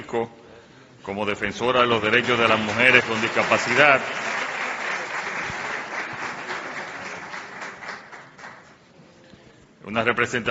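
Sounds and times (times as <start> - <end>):
speech: 0.1 - 0.4, 1.0 - 4.2, 9.9 - 10.5
applause: 1.9 - 8.8.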